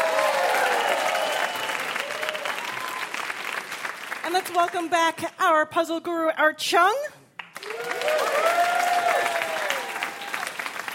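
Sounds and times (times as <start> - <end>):
quiz show audience applauding a contestant: 0.0 - 4.3, 7.5 - 10.9
speech: 4.3 - 7.1, 8.0 - 8.6.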